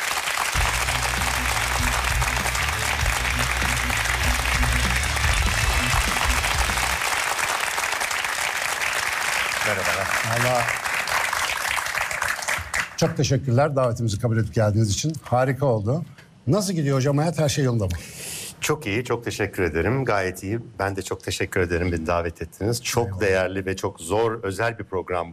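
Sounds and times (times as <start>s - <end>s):
audience applause: 0.0s - 13.0s
low musical tone: 0.6s - 7.0s
speech: 9.7s - 10.8s, 13.0s - 18.1s, 18.7s - 25.3s.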